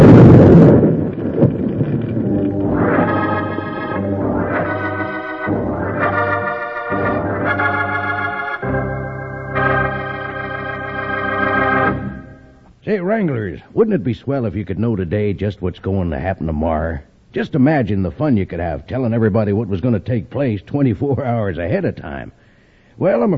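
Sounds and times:
dynamite explosion radio-drama sound effect: 0:00.0 - 0:05.2
dramatic orchestral chords: 0:02.3 - 0:12.6
speech: 0:13.2 - 0:22.4, 0:23.0 - 0:23.3.

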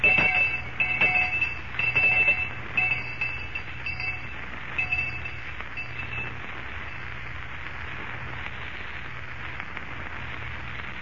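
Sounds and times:
lunch bell ringing: 0:00.0 - 0:07.1.

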